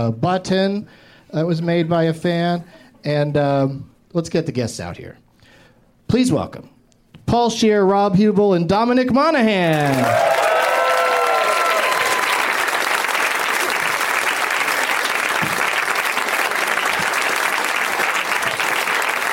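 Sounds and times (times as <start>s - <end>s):
speech: 0.0s - 5.2s, 6.1s - 6.7s, 7.3s - 10.4s
audience applause and cheering: 9.8s - 19.3s.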